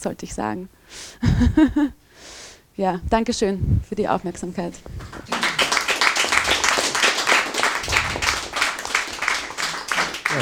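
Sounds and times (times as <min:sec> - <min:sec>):
speech: 0:00.0 - 0:05.4
laughter: 0:01.2 - 0:01.9, 0:05.2 - 0:06.9
audience applause: 0:05.0 - 0:10.3.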